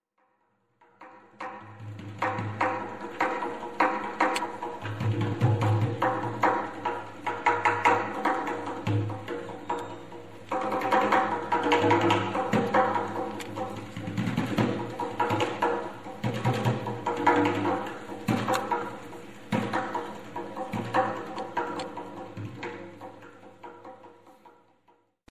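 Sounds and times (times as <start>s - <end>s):
rhythm: 2.3s - 24.3s.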